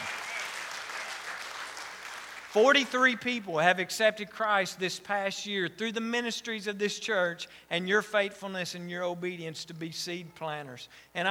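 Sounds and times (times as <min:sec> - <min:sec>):
audience applause: 0:00.0 - 0:02.9
speech: 0:02.5 - 0:11.2.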